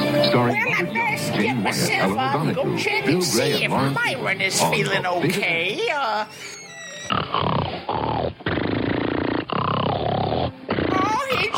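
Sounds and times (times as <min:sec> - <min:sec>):
speech: 0:00.1 - 0:08.4
loud rasping snoring: 0:06.4 - 0:11.5.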